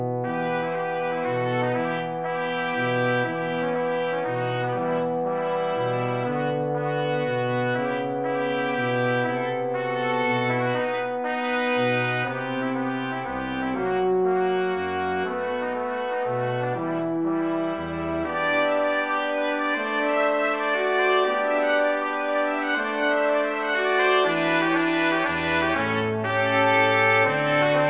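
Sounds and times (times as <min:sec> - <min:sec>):
brass quartet playing a folk song: 0:00.2 - 0:27.8.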